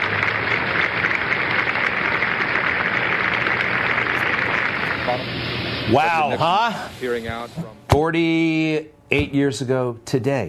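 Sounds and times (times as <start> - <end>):
applause from a large crowd: 0.0 - 5.9
speech: 5.2 - 10.4.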